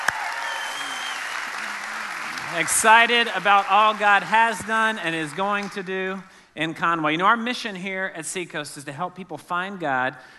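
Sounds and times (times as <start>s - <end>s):
scattered cheers: 0.0s - 4.0s
crowd applauding: 0.0s - 6.2s
speech: 2.5s - 10.3s.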